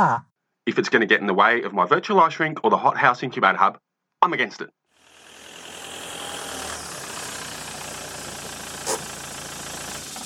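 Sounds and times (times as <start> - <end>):
speech: 0.0 - 4.8
car engine running while parking: 5.5 - 10.2.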